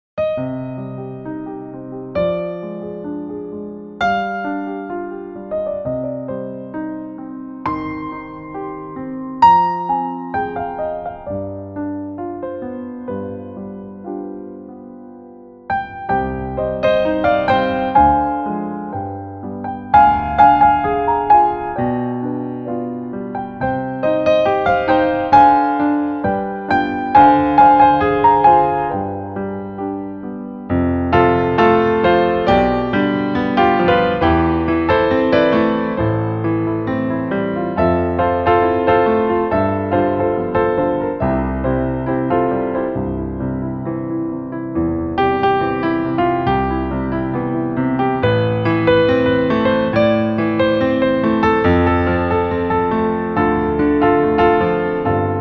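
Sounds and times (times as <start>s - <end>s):
piano: 0.0s - 55.3s.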